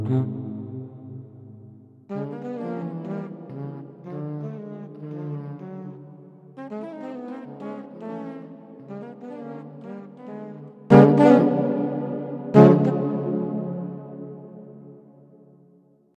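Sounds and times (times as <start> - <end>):
celtic music: 10.9 - 15.0.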